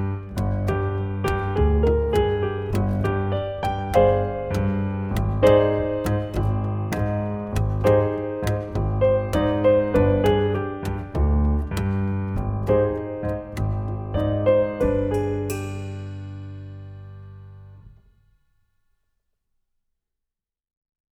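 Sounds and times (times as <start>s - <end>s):
Arabic dance music backing track: 0.0s - 16.4s.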